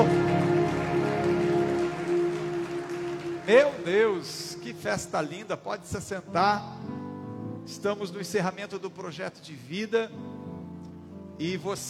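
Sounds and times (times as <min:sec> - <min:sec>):
audience applauding: 0:00.0 - 0:04.4
speech: 0:03.5 - 0:06.9, 0:07.7 - 0:10.3, 0:11.4 - 0:11.8.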